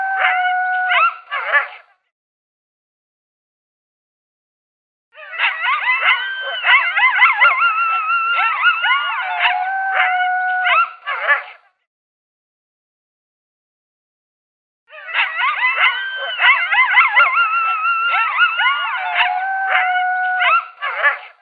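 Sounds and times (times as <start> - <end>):
coyote locator call of yips and howls: 0.0 - 1.8, 5.2 - 11.6, 14.9 - 21.3.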